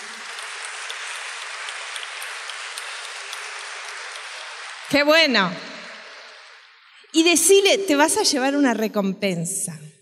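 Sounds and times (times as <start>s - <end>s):
audience applause: 0.0s - 7.0s
speech: 4.9s - 5.7s, 7.1s - 9.8s.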